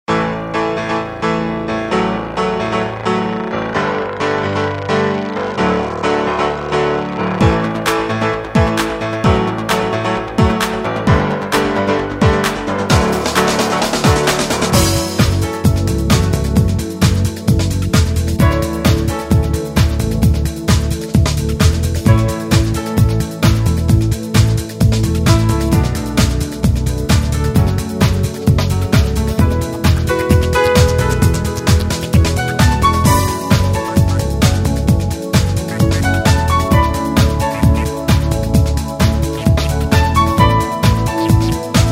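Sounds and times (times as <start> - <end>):
piano music: 0.1 - 41.9.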